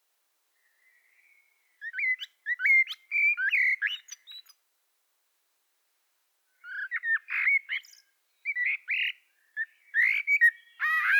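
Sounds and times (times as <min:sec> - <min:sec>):
common blackbird singing mellow fluted phrases: 0:00.6 - 0:04.5, 0:06.6 - 0:11.1.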